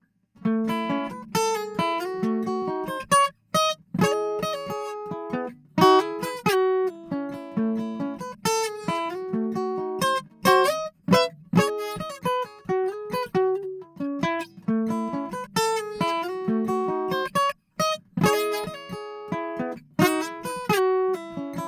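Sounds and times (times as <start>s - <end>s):
Collings OM2HA acoustic guitars: 0.2s - 21.6s.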